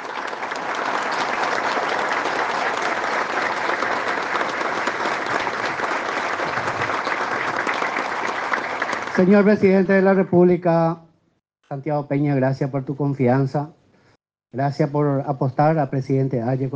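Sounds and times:
audience applause: 0.0 - 10.1
speech: 9.2 - 11.0, 11.7 - 13.8, 14.5 - 16.7.

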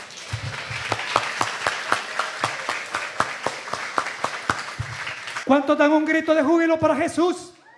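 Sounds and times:
audience applauding: 0.0 - 5.5
speech: 5.5 - 7.5.

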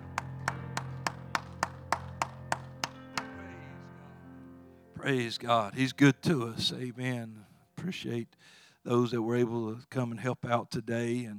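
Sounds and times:
audience clapping hands: 0.0 - 3.4
speech: 5.0 - 11.3.

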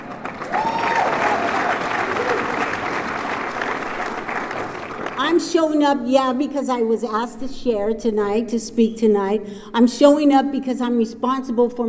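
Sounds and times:
audience applause: 0.0 - 5.2
speech: 5.4 - 11.8.

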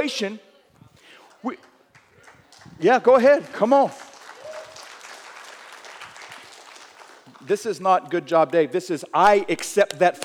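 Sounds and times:
speech: 0.0 - 0.5, 1.4 - 1.7, 2.8 - 4.0, 7.4 - 10.2
audience clapping: 1.3 - 7.7, 9.3 - 10.2.

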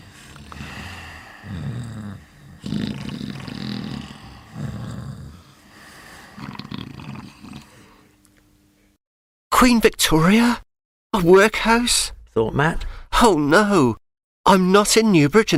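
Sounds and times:
children snoring: 0.0 - 8.1
steady hum: 0.0 - 9.0
speech: 9.6 - 15.5.

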